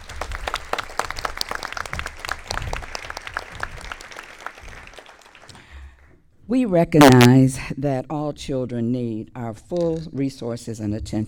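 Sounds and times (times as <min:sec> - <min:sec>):
audience applause: 0:00.0 - 0:05.7
speech: 0:06.5 - 0:11.2.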